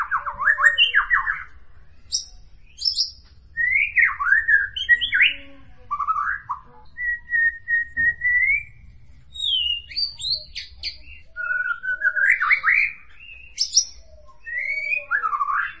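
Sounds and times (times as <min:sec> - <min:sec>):
white-rumped shama singing melodious phrases: 0:00.0 - 0:15.7.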